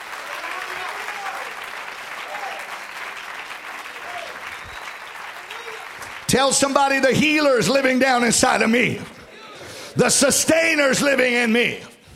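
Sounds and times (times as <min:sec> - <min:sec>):
audience clapping hands: 0:00.0 - 0:09.2
speech: 0:06.3 - 0:09.2, 0:10.0 - 0:11.9.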